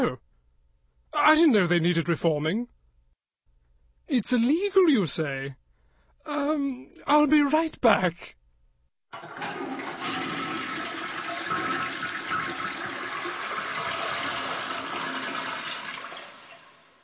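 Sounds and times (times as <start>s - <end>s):
speech: 0.0s - 0.2s, 1.1s - 2.8s, 4.1s - 5.6s, 6.2s - 8.4s, 9.1s - 9.8s
toilet flushing: 9.2s - 17.0s.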